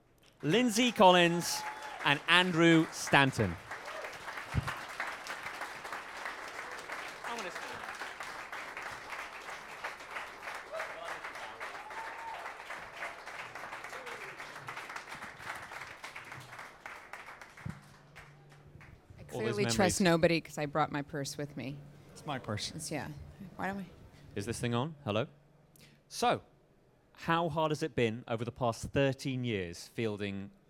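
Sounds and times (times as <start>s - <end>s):
speech: 0.4s - 3.6s, 4.5s - 4.8s, 19.8s - 25.4s, 26.1s - 26.5s, 27.2s - 30.6s
audience applause welcoming guests at a film event: 0.4s - 19.8s.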